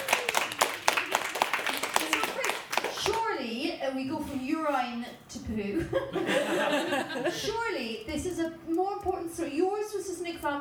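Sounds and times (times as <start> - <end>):
round of applause hand claps: 0.0 - 3.2
speech: 3.9 - 10.6
laughter: 5.8 - 7.6.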